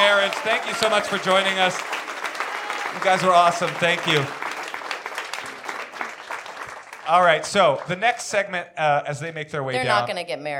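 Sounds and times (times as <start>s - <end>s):
speech: 0.0s - 2.1s, 2.9s - 4.4s, 7.1s - 10.5s
audience applause: 0.0s - 8.5s.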